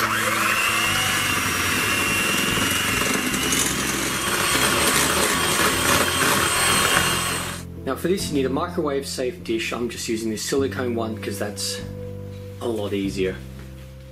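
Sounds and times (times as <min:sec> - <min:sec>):
electric mixer running on low: 0:00.0 - 0:07.7
speech: 0:08.0 - 0:12.0, 0:12.6 - 0:13.5.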